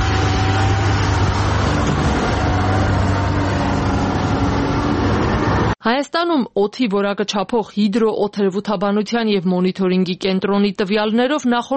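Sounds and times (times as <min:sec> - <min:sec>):
road noise: 0:00.0 - 0:05.8
truck driving out of a construction site: 0:00.0 - 0:05.8
speech: 0:05.8 - 0:11.7.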